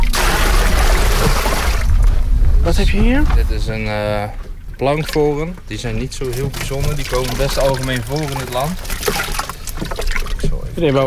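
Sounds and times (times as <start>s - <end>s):
small bucket dipped into a fish tank and filled with water: 0.0s - 11.0s
speech: 2.7s - 9.4s, 10.8s - 11.0s.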